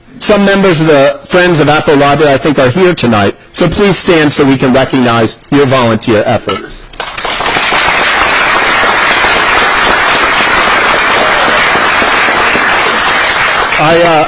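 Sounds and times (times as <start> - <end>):
speech: 0.2 - 6.8, 13.8 - 14.2
crowd applauding: 7.0 - 14.2.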